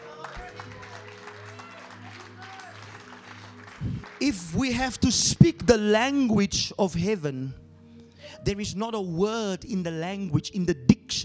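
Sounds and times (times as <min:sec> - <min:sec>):
audience clapping: 0:00.0 - 0:05.1
speech: 0:03.8 - 0:07.6, 0:08.4 - 0:11.2.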